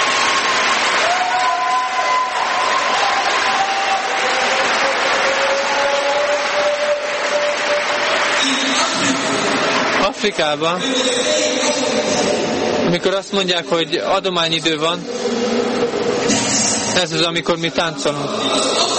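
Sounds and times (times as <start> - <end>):
church congregation applauding after a sermon: 0.0 - 11.7
speech: 10.2 - 18.8.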